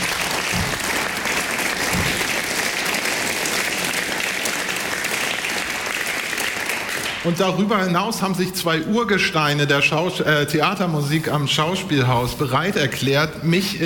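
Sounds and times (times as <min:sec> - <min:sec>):
audience applause: 0:00.0 - 0:07.7
speech: 0:07.2 - 0:13.8.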